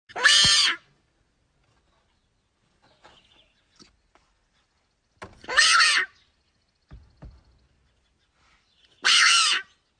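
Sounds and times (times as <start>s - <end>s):
hyrax screaming: 5.5s - 6.2s, 9.0s - 9.8s.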